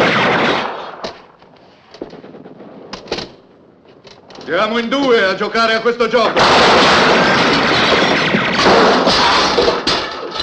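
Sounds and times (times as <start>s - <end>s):
heavy sustained gunfire: 0.0s - 1.1s, 6.4s - 10.0s
speech: 4.5s - 7.8s.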